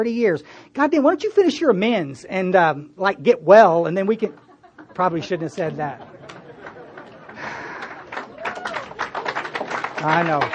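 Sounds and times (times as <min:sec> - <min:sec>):
speech: 0:00.0 - 0:04.4, 0:05.0 - 0:06.1, 0:10.0 - 0:10.5
laughter: 0:04.2 - 0:10.5
thin scattered applause from part of an audience: 0:06.1 - 0:10.5.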